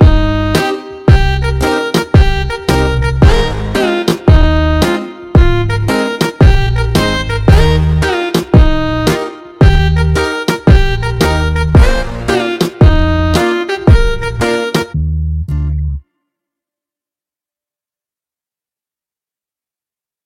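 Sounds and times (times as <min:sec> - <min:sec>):
slowed instrumental beat remix: 0:00.0 - 0:15.8.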